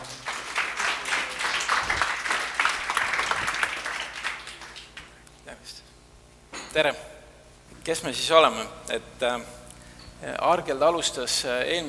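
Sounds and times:
audience applause: 0.0s - 5.1s
speech: 6.8s - 7.1s, 7.9s - 9.6s, 10.2s - 11.8s.

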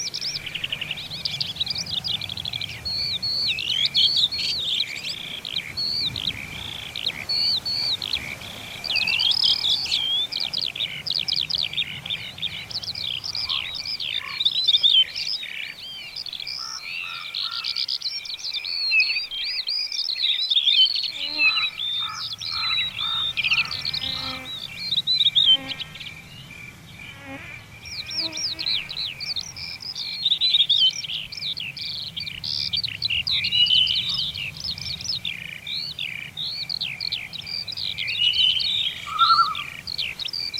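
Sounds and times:
lower calls or croaks: 0.0s - 18.1s, 21.1s - 26.1s, 35.3s - 40.5s
high chirping birds in a summer village: 0.0s - 40.5s.

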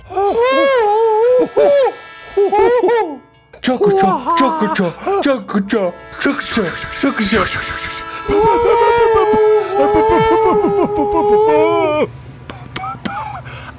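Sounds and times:
two voices imitating a train whistle: 0.0s - 12.2s.

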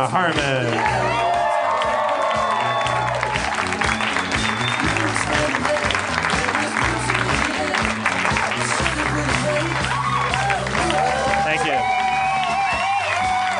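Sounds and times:
audience applauding and cheering: 0.0s - 13.5s.

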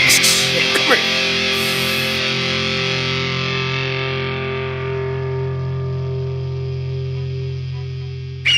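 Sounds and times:
heavily distorted guitar chord strummed: 0.0s - 8.4s.

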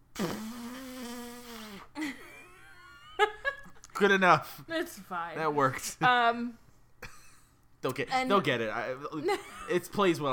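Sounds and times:
mouth-made fart noise: 0.0s - 2.0s
speech: 4.0s - 6.6s, 7.8s - 10.3s.

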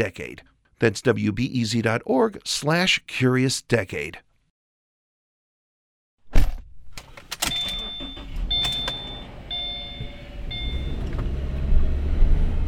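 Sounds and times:
speech: 0.0s - 4.2s
car driving through a neighborhood on pothole-filled streets: 6.9s - 12.6s.

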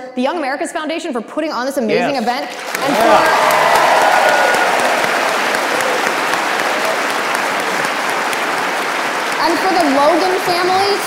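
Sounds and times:
speech: 0.2s - 4.6s, 9.4s - 11.0s
audience applause: 2.5s - 11.0s.

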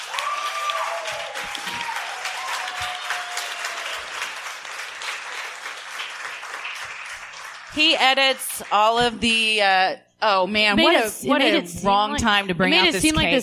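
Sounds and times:
audience round of applause: 0.0s - 8.9s
speech: 7.8s - 13.4s.

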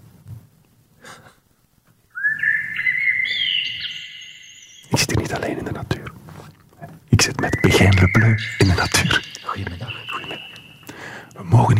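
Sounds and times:
birdsong outdoors: 2.1s - 5.2s, 7.2s - 11.4s
speech: 7.4s - 10.5s.

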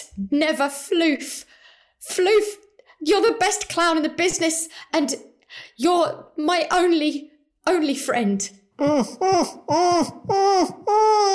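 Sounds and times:
speech: 0.2s - 11.3s
gasping: 8.8s - 11.3s
muffled screaming through a gag: 8.8s - 11.3s.

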